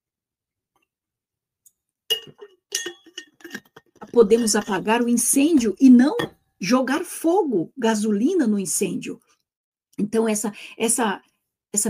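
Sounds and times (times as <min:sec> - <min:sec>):
glass clinking while pouring drinking water: 0:02.1 - 0:05.0, 0:05.6 - 0:06.5
speech: 0:02.3 - 0:02.5, 0:04.2 - 0:09.2, 0:10.0 - 0:11.8.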